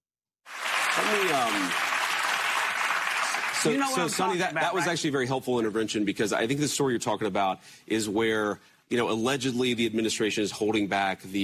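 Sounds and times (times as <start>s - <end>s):
audience clapping: 0.5s - 4.9s
speech: 1.0s - 1.8s, 3.6s - 11.4s.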